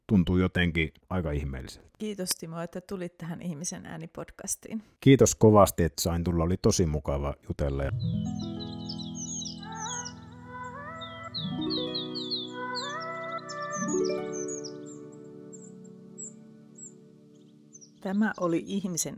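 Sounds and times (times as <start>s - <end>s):
speech: 0.1s - 8.4s, 18.0s - 19.1s
forest birdsong: 7.8s - 19.1s.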